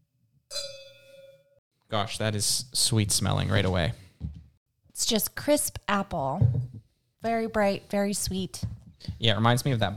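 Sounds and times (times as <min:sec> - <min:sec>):
wine glasses clinking in a toast: 0:00.5 - 0:01.5
speech: 0:01.9 - 0:04.0, 0:05.0 - 0:09.9.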